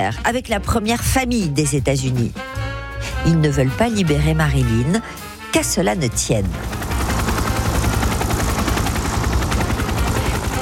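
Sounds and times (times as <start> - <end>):
speech: 0.0 - 6.8
helicopter flying: 4.1 - 10.6.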